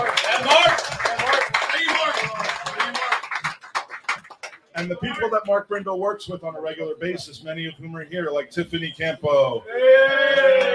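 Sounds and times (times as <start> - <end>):
audience applause: 0.0 - 4.8
speech: 4.8 - 10.7.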